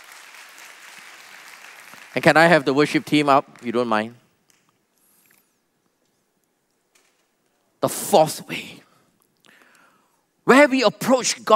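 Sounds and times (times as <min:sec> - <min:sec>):
audience clapping: 0:00.0 - 0:04.2
speech: 0:02.2 - 0:04.2, 0:07.8 - 0:08.9, 0:10.5 - 0:11.5.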